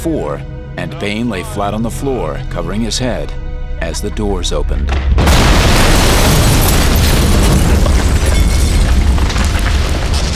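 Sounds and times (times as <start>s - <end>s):
speech: 0.0s - 6.4s
explosion blast: 5.0s - 10.3s.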